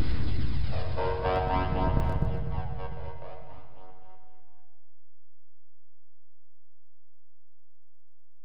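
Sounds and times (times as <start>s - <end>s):
music in F Dorian at 60 BPM: 0.4s - 4.7s.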